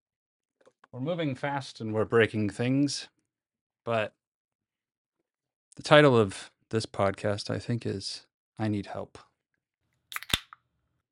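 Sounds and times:
speech: 0.9s - 3.2s, 3.9s - 4.2s, 5.8s - 9.3s
can of water being cracked open: 10.1s - 10.6s.

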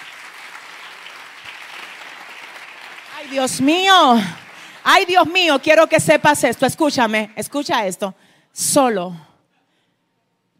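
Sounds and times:
steady applause from a crowd: 0.0s - 7.6s
speech: 3.2s - 9.3s.

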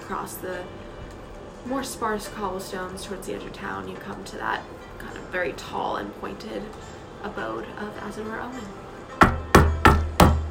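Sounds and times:
speech: 0.1s - 0.9s, 1.6s - 8.8s
firm knocking on a wooden door: 9.2s - 10.4s.

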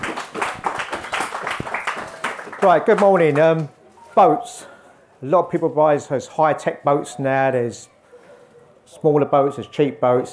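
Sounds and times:
audience applause: 0.0s - 3.4s
speech: 2.6s - 7.9s, 8.9s - 10.3s.

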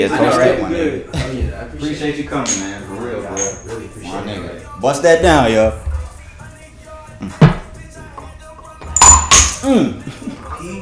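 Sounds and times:
speech: 0.0s - 5.8s, 7.2s - 7.5s, 9.6s - 10.2s
shot glass breaking: 8.9s - 9.7s.

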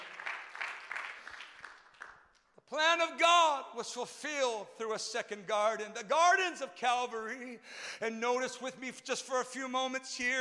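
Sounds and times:
audience clapping hands: 0.0s - 2.6s
speech: 2.7s - 10.3s.

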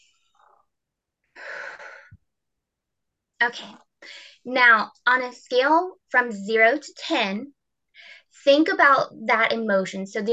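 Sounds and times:
deep calming breath during an EFT tapping session: 1.4s - 2.2s
speech: 3.4s - 10.3s.

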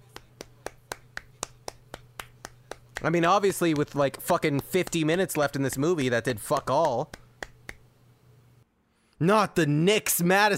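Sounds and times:
clapping: 0.0s - 7.8s
speech: 3.0s - 7.2s, 9.2s - 10.5s.

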